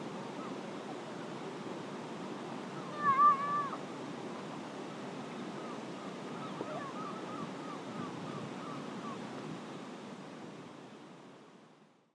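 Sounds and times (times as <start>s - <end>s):
beach soundscape at Crymlyn Burrows: 0.0s - 12.0s.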